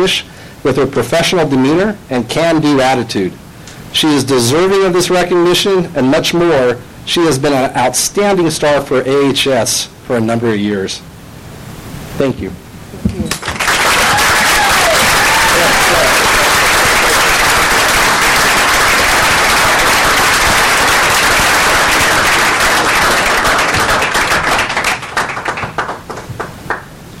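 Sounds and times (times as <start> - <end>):
speech: 0.0 - 11.1, 12.2 - 12.6
audience applause: 13.3 - 26.9.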